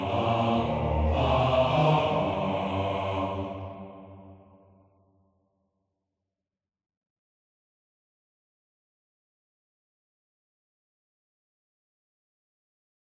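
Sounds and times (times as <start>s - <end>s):
bass: 0.0s - 3.4s.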